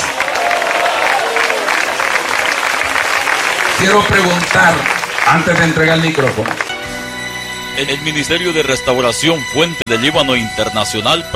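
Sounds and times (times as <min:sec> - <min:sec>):
audience applause: 0:00.0 - 0:07.1
speech: 0:03.8 - 0:06.6, 0:07.8 - 0:11.3.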